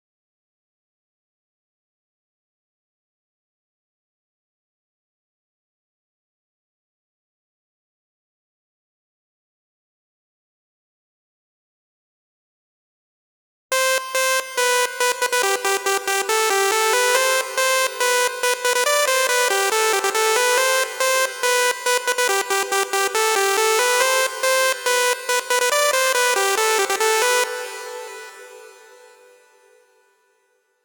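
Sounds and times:
140 BPM melody: 0:13.7 - 0:29.4.

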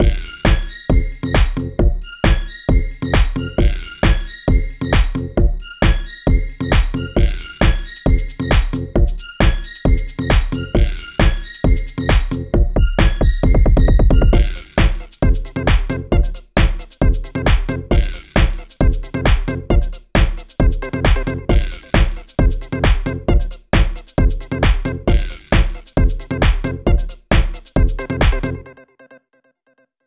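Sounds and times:
old skool house and garage music beat: 0:00.0 - 0:28.7.

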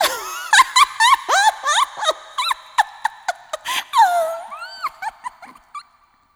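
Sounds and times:
person laughing: 0:00.0 - 0:05.8.

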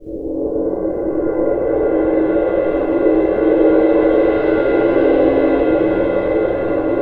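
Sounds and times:
cymbal roll: 0:00.6 - 0:07.0.

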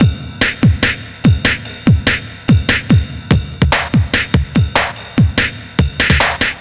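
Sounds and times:
hardcore breakbeat drums at 145 BPM in E flat minor: 0:00.0 - 0:06.6.

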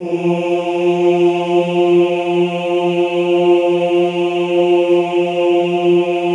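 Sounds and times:
classical choir singing ooh on F2: 0:00.0 - 0:06.3.

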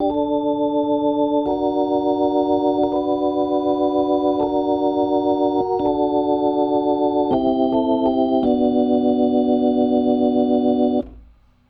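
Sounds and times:
70s analog funk soul organ riff: 0:00.0 - 0:11.2.

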